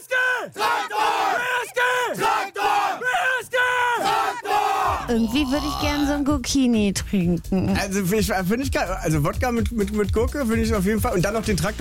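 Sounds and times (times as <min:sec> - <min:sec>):
team players shouting battle cry: 0:00.0 - 0:05.7
speech: 0:00.4 - 0:00.9, 0:05.1 - 0:11.7.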